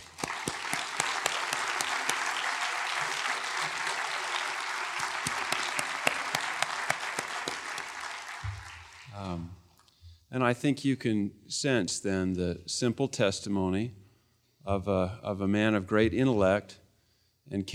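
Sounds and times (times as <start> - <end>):
audience applause: 0.0 - 9.4
speech: 10.4 - 14.0, 14.6 - 16.8, 17.5 - 17.7.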